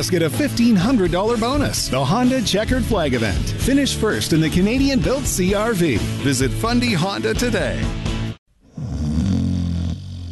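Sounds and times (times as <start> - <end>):
speech: 0.0 - 8.0
person snoring: 8.6 - 10.2.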